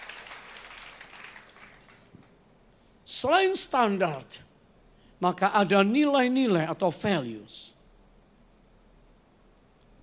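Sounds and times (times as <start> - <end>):
audience clapping: 0.0 - 2.4
speech: 3.2 - 4.5, 5.2 - 7.8.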